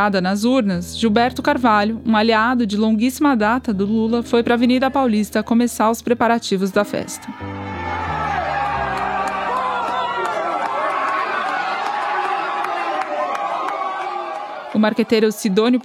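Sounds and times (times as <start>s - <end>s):
speech: 0.0s - 8.0s, 14.8s - 15.8s
distant crowd celebrating in the neighborhood streets: 6.8s - 15.8s.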